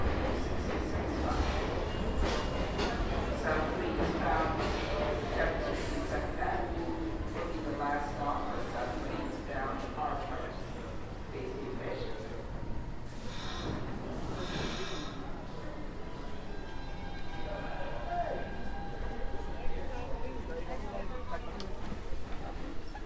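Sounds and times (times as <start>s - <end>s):
New York City subway train: 0.0s - 23.0s.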